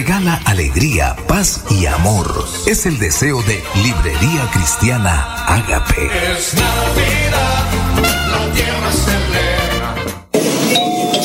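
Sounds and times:
speech: 0:00.0 - 0:09.6
doorbell ringing: 0:10.7 - 0:11.2.

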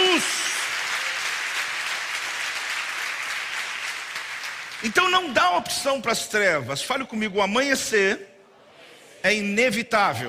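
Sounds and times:
audience applause: 0:00.0 - 0:05.3
speech: 0:04.8 - 0:08.3, 0:09.2 - 0:10.2.

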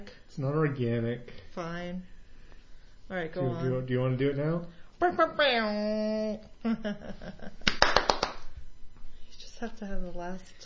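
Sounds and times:
speech: 0:00.4 - 0:02.2, 0:03.1 - 0:07.7, 0:09.6 - 0:10.6
hand clapping: 0:07.6 - 0:08.5.

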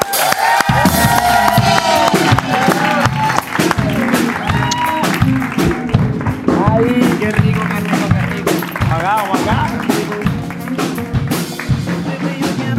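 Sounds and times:
shouts cheers and overlapping voices: 0:00.0 - 0:03.7, 0:04.3 - 0:05.4
lively audience applause: 0:00.0 - 0:12.6.

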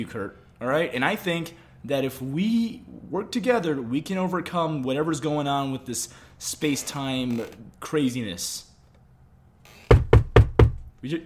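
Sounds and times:
speech: 0:00.0 - 0:08.7, 0:11.0 - 0:11.2
sharp knocks heard inside a tent: 0:09.8 - 0:10.9.

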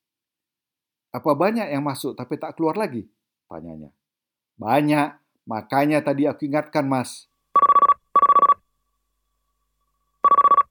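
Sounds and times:
speech: 0:01.1 - 0:04.0, 0:04.6 - 0:07.3
mobile phone ringing: 0:07.6 - 0:08.6, 0:10.2 - 0:10.6.

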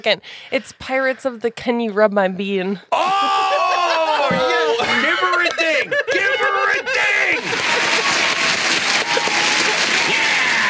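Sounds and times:
speech: 0:00.0 - 0:03.6
laughter: 0:02.9 - 0:10.6
applause: 0:07.2 - 0:10.6.

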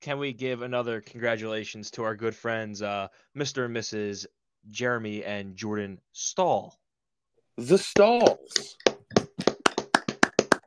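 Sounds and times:
speech: 0:00.0 - 0:06.8, 0:07.6 - 0:08.9
hands clapping: 0:07.9 - 0:10.6.

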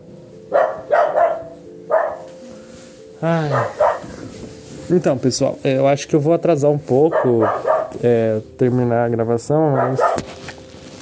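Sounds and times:
dog barking: 0:00.5 - 0:02.3, 0:03.5 - 0:04.1, 0:07.1 - 0:08.0, 0:09.7 - 0:10.3
speech: 0:03.2 - 0:03.8, 0:04.9 - 0:10.4.

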